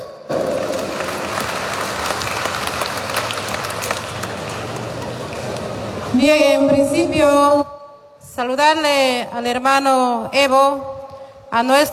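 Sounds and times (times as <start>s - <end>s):
audience applause: 0.3s - 6.1s
speech: 6.2s - 7.7s, 8.4s - 10.9s, 11.5s - 11.9s.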